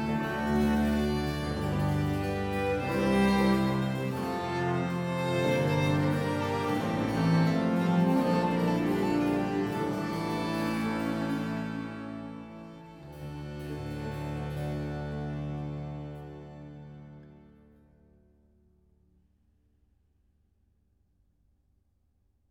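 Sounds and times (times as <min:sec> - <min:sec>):
six-part sinfonia: 0:00.0 - 0:17.4.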